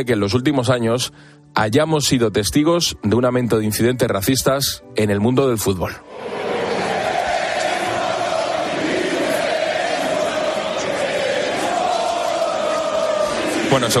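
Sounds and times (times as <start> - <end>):
speech: 0.0 - 6.4, 13.7 - 13.9
stadium crowd shouting insults at player: 6.1 - 13.9.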